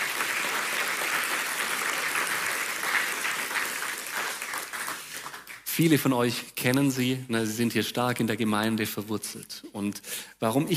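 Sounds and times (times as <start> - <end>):
audience applause: 0.0 - 5.7
speech: 5.8 - 10.7.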